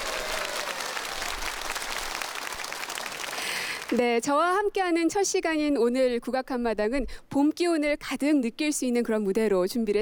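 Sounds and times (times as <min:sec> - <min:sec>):
audience applause: 0:00.0 - 0:04.1
speech: 0:03.9 - 0:10.0.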